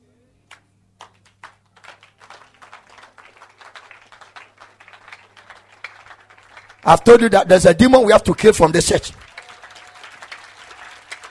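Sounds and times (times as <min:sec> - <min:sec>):
audience clapping: 0:00.5 - 0:11.2
speech: 0:06.8 - 0:09.2.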